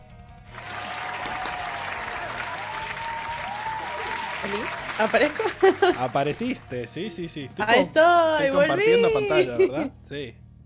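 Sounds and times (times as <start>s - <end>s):
applause sound effect: 0.4s - 7.0s
laughter: 4.1s - 6.6s, 7.6s - 10.0s
speech: 4.4s - 10.4s.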